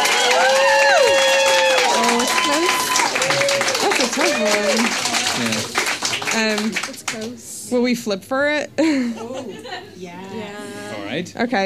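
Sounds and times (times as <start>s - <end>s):
people whooping and cheering: 0.0s - 6.2s
audience clapping: 0.0s - 7.4s
laughter: 2.0s - 6.7s, 8.8s - 10.0s
speech: 6.4s - 11.6s.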